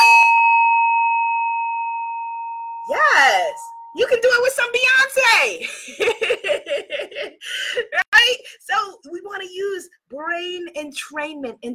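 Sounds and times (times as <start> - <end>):
Tibetan singing bowl ringing: 0.0 - 4.2
speech: 3.4 - 11.7
laughter: 5.6 - 8.1.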